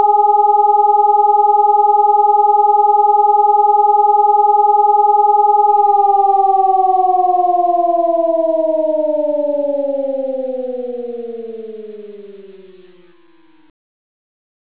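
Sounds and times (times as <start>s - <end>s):
fire alarm: 0.0s - 12.7s.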